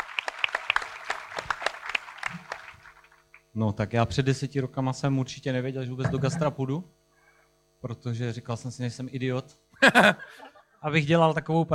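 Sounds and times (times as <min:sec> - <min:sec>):
audience applause: 0:00.0 - 0:03.3
speech: 0:03.6 - 0:07.0, 0:07.8 - 0:11.7
laughter: 0:09.8 - 0:10.6.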